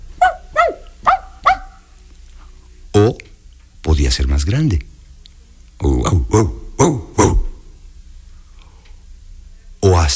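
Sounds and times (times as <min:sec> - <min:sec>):
small dog barking: 0:00.2 - 0:01.9
speech: 0:03.0 - 0:03.2, 0:04.0 - 0:04.9, 0:05.8 - 0:07.0.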